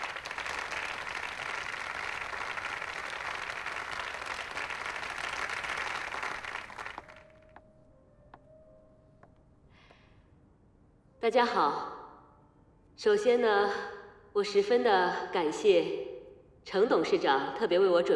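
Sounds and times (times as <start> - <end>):
warm applause from audience: 0.0 - 7.4
speech: 11.2 - 11.9, 13.0 - 18.1.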